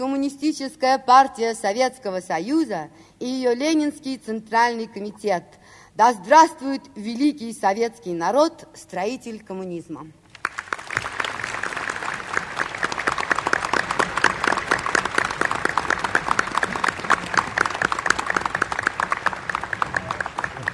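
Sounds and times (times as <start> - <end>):
speech: 0.0 - 10.2
large audience applause: 10.3 - 20.7.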